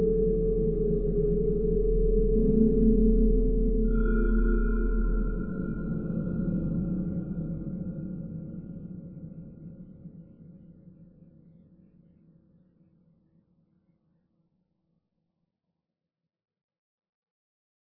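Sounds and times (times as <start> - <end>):
drone: 0.0 - 7.4.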